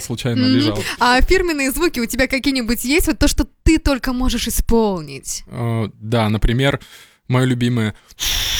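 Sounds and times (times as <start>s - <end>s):
speech: 0.0s - 8.5s
voice imitating a train: 0.4s - 0.9s.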